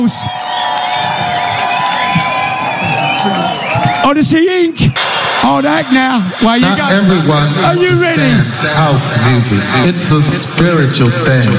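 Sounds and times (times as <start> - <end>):
speech: 0.0 - 0.5, 3.2 - 11.5
large crowd cheering and whooping: 0.0 - 11.5
faint clapping: 0.6 - 3.2.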